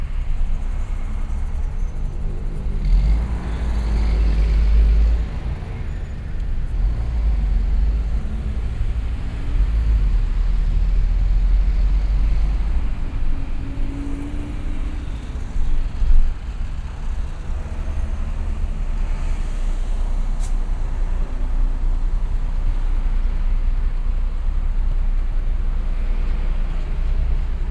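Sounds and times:
street ambience in Brazil: 0:00.0 - 0:27.6.

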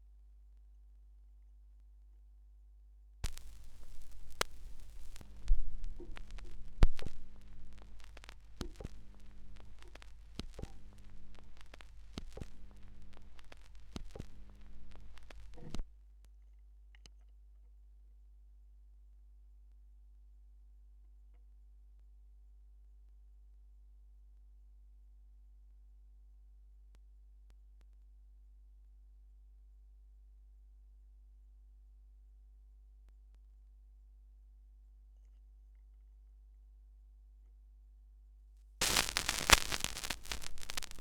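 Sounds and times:
vinyl record noise: 0:03.2 - 0:15.8, 0:38.8 - 0:40.9.

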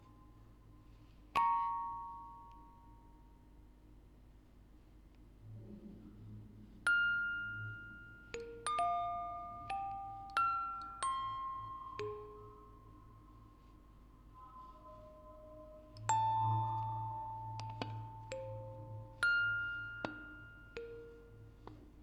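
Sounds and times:
quartet of music boxes playing: 0:01.4 - 0:03.4, 0:06.9 - 0:22.0.

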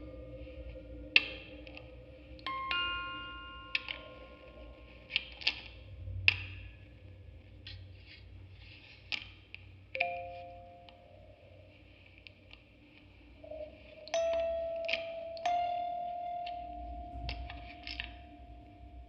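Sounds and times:
field recording ambience: 0:00.0 - 0:19.0
quartet of music boxes playing: 0:02.4 - 0:05.7, 0:10.0 - 0:11.6, 0:13.4 - 0:19.0.

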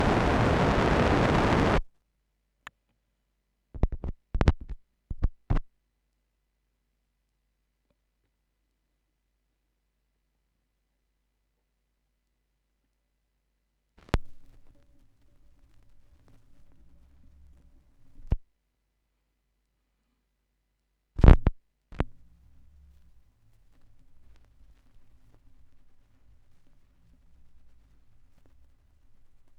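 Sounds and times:
vinyl record noise: 0:00.0 - 0:01.9, 0:14.0 - 0:18.4, 0:21.2 - 0:29.5.

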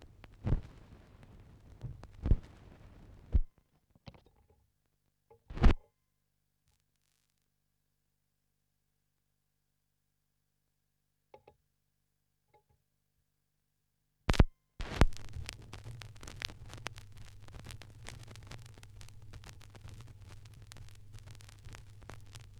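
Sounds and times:
vinyl record noise: 0:00.0 - 0:03.5, 0:05.5 - 0:05.8, 0:14.3 - 0:22.5.

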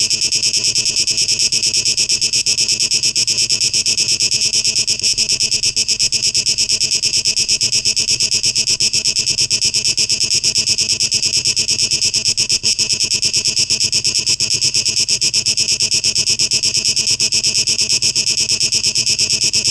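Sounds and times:
cicadas buzzing: 0:00.0 - 0:19.6.

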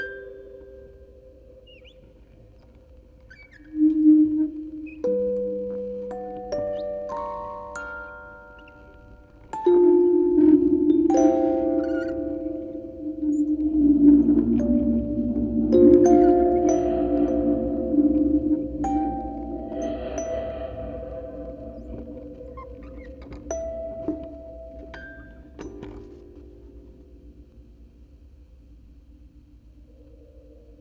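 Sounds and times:
quartet of music boxes playing: 0:05.0 - 0:27.6.

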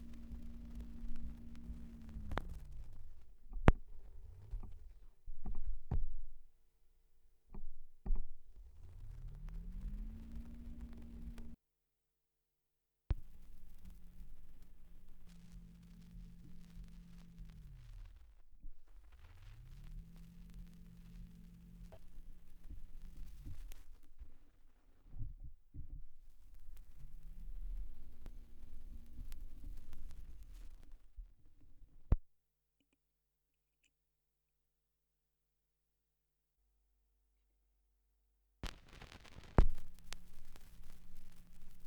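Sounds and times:
78rpm record surface noise: 0:00.0 - 0:06.5, 0:07.6 - 0:11.6, 0:13.1 - 0:32.2, 0:38.6 - 0:41.8.

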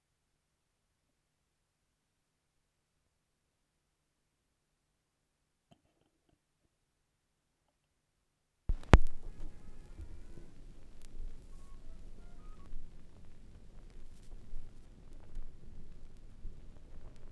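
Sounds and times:
vinyl record noise: 0:08.7 - 0:17.3.

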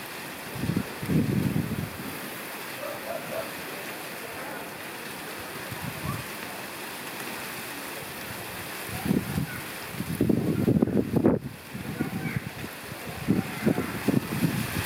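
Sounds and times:
wind on the water at sunset in Curacao: 0:00.0 - 0:03.7, 0:05.4 - 0:06.4, 0:08.0 - 0:14.8.

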